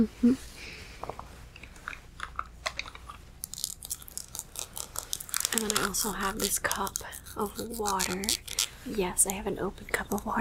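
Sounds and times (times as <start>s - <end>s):
speech: 0.0s - 1.2s, 5.6s - 10.4s
biting and chewing a burger: 1.5s - 9.4s.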